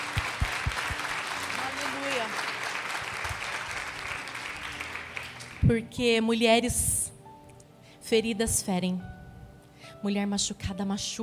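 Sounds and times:
audience applause: 0:00.0 - 0:05.6
speech: 0:05.7 - 0:06.9, 0:08.1 - 0:09.2, 0:10.0 - 0:11.2.

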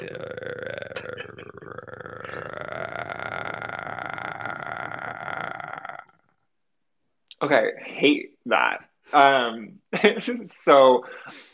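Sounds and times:
voice imitating an animal growl: 0:00.0 - 0:06.2
speech: 0:07.4 - 0:11.5.

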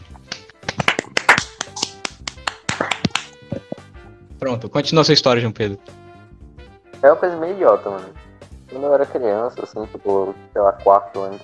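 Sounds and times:
small group applauding: 0:00.3 - 0:03.8
speech: 0:04.4 - 0:06.0, 0:07.0 - 0:11.4.

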